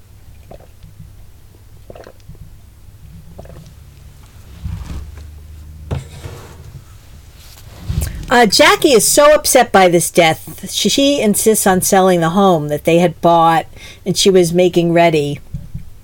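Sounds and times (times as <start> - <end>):
steady low hum: 0.0 - 9.0
person sipping water: 0.4 - 1.0, 1.8 - 2.5, 3.1 - 5.0
speech: 8.4 - 15.4.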